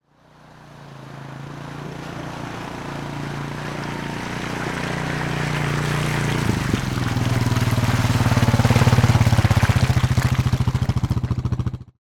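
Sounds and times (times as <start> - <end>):
ATV with trailer approaching and stopping in wet mud: 0.0 - 12.0.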